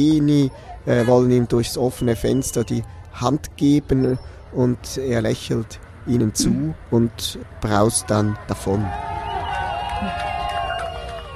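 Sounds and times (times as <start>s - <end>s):
speech: 0.0s - 9.3s
large crowd cheering and whooping: 8.2s - 11.3s.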